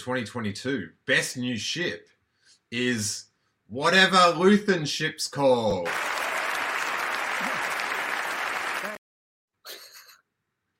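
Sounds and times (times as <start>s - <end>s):
speech: 0.0s - 2.1s, 2.7s - 6.1s
audience clapping: 5.8s - 9.0s.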